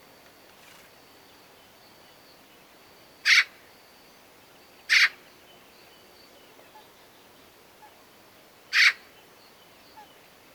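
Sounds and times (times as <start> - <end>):
Eurasian magpie Pica pica calling with harsh noisy rasps: 4.9 - 5.1, 8.8 - 9.0.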